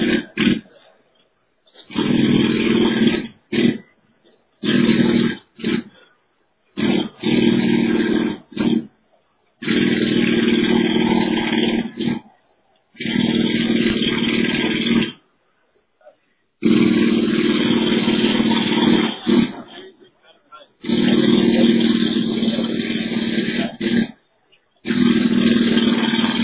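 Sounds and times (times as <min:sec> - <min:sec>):
jackhammer heard through voicemail: 0:00.0 - 0:00.8, 0:01.8 - 0:03.8, 0:04.6 - 0:06.1, 0:06.8 - 0:08.9, 0:09.6 - 0:12.3, 0:13.0 - 0:15.2, 0:16.6 - 0:19.9, 0:20.8 - 0:24.2, 0:24.8 - 0:26.4.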